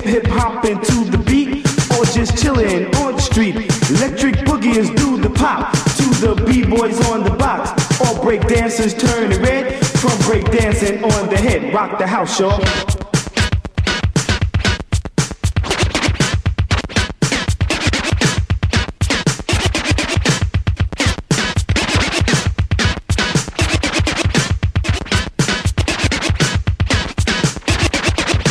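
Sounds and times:
turntable record scratching: 0.0 - 28.4
speech: 0.2 - 1.4, 8.3 - 13.0.

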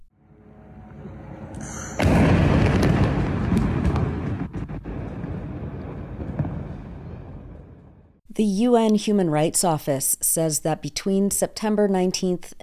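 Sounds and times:
explosion from remote-controlled vehicle destroying residential building in Gaza City: 1.6 - 8.2
sharp cracks: 2.0 - 7.7
speech: 8.4 - 12.6.

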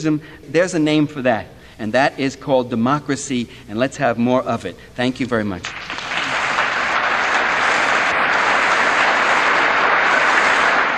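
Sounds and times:
speech: 0.0 - 5.9
audience applause after Michael Parenti's 1993 talk: 5.6 - 10.9.

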